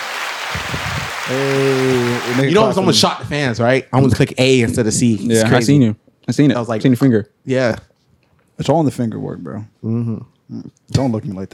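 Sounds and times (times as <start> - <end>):
audience applause: 0.0 - 2.9
speech: 1.3 - 7.9, 8.6 - 11.5.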